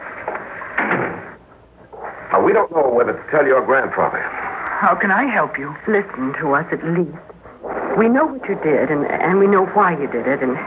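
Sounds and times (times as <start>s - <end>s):
low steady hum: 0.0s - 10.6s
door being pushed shut: 0.8s - 1.3s
speech: 2.5s - 7.3s, 8.0s - 10.6s.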